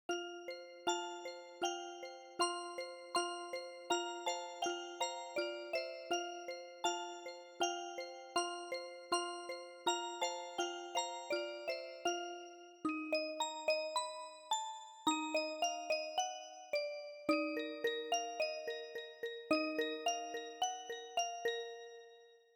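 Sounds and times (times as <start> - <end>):
music box: 0.1 - 22.5.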